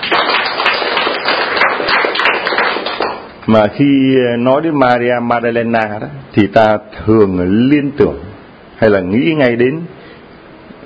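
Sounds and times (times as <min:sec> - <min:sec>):
church congregation clapping for the feast of Saint Mary Magdalene: 0:00.0 - 0:03.4
speech: 0:03.5 - 0:10.0.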